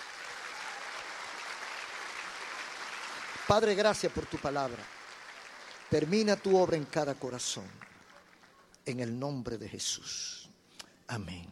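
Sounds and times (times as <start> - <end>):
applause: 0.0 - 8.7
speech: 3.5 - 5.0, 5.9 - 7.9, 8.8 - 10.5, 11.1 - 11.5.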